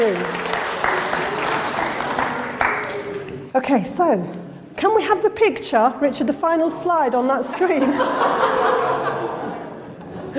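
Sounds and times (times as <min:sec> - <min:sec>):
audience applause: 0:00.0 - 0:03.4
speech: 0:03.6 - 0:09.5
laughter: 0:07.3 - 0:10.3.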